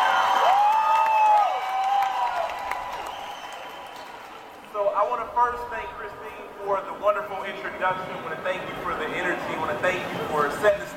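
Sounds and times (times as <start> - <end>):
round of applause from crowd: 0.0 - 4.7
speech: 5.2 - 10.8.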